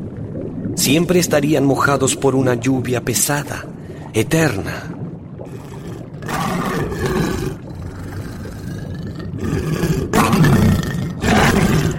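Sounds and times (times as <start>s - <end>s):
speech: 0.8s - 4.9s
monstrous beast roaring with growling snarls: 5.5s - 11.9s.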